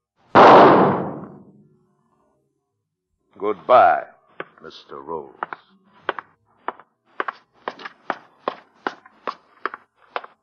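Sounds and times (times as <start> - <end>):
gunshot: 0.3 - 1.6
speech: 3.4 - 5.6.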